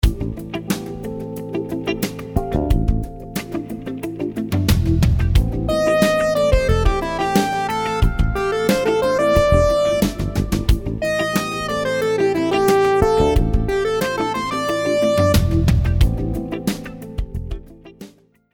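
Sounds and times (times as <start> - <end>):
syncopated rhythms: 0.0 - 18.3.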